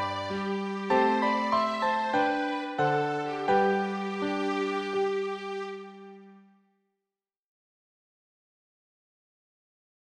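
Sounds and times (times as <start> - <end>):
piano: 0.0 - 6.5.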